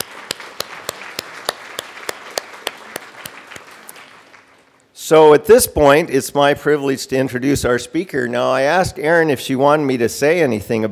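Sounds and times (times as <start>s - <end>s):
audience applause: 0.0s - 4.8s
speech: 5.1s - 10.9s.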